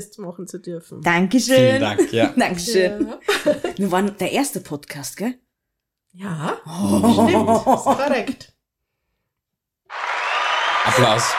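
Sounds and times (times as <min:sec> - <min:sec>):
speech: 0:00.0 - 0:05.4, 0:06.1 - 0:08.6, 0:10.8 - 0:11.3
laughter: 0:01.6 - 0:03.9, 0:06.8 - 0:08.3, 0:10.8 - 0:11.3
applause: 0:09.9 - 0:11.3.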